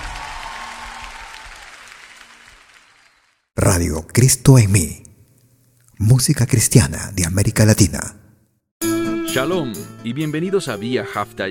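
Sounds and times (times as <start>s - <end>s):
applause: 0.0s - 3.6s
speech: 3.7s - 5.1s, 6.0s - 8.2s, 9.4s - 11.4s.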